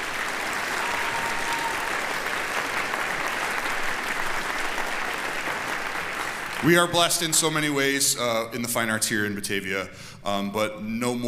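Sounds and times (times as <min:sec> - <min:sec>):
concert audience applause: 0:00.0 - 0:07.0
speech: 0:06.6 - 0:11.2.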